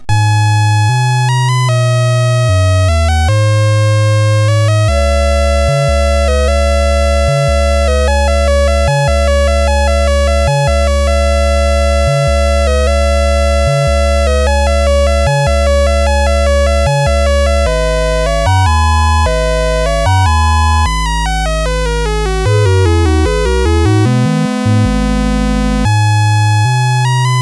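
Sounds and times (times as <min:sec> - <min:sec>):
SID CSG8580R5 chip music: 0:00.0 - 0:27.4.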